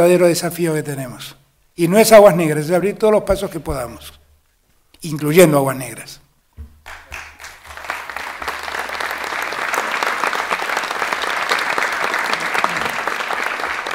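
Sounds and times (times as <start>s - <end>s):
speech: 0.0s - 4.2s, 5.0s - 6.2s
audience applause: 6.8s - 13.9s.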